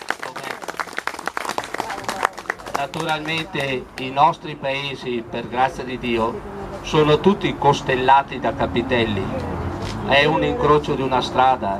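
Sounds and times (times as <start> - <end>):
audience applause: 0.0 - 3.8
speech: 2.8 - 11.7.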